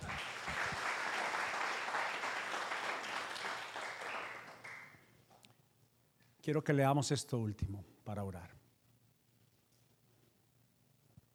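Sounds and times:
crowd applauding: 0.0s - 5.1s
speech: 6.4s - 8.6s.

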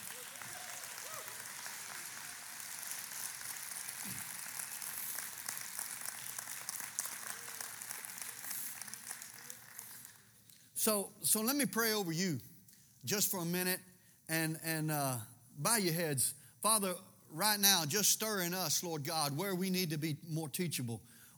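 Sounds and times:
audience applauding: 0.0s - 10.5s
speech: 10.8s - 21.3s.

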